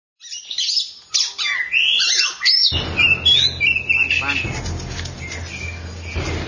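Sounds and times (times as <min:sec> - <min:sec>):
Oriental magpie-robin singing: 0:00.2 - 0:04.6, 0:05.2 - 0:06.3.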